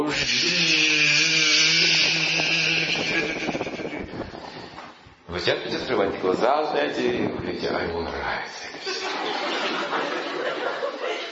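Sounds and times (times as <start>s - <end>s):
speech: 0.0s - 0.5s, 5.5s - 8.8s
dentist's drill whirring: 0.1s - 4.0s
laughter: 8.8s - 11.3s.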